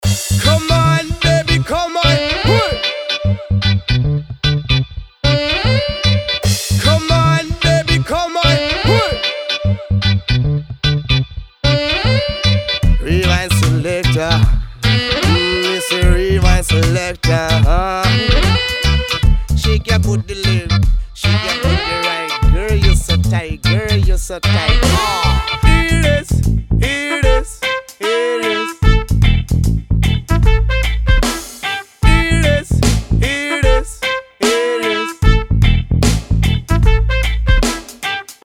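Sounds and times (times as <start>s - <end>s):
reggae music: 0.0s - 38.4s.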